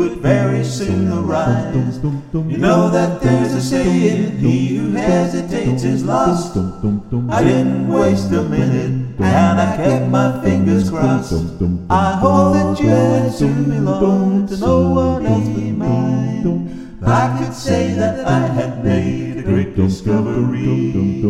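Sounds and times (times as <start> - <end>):
voices: 0.0 - 6.7, 7.3 - 21.2.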